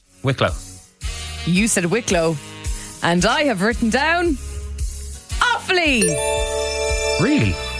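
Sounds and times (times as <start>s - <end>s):
speech: 0.2s - 0.7s, 1.4s - 4.5s, 5.7s - 6.5s, 7.2s - 7.7s
beeps: 6.0s - 7.7s.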